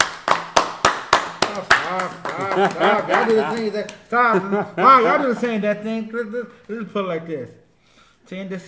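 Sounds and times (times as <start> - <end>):
audience hand claps during a season-finale awards segment: 0.0 - 4.2
laughter: 1.6 - 5.8
speech: 2.6 - 7.6, 8.3 - 8.6.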